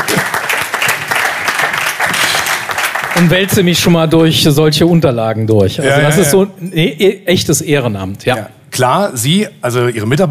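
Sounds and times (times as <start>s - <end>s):
audience applause: 0.0s - 3.5s
speech: 3.2s - 10.2s.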